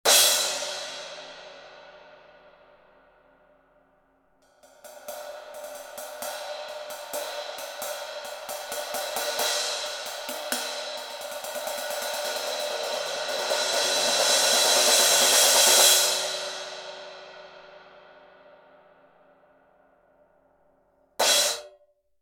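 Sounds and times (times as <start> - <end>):
Turkish Araya 17 crash cymbal: 0.1 - 20.0, 21.2 - 21.8.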